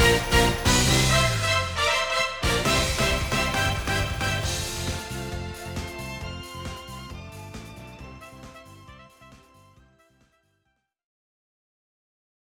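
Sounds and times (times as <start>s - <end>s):
tropical beat: 0.0s - 9.7s.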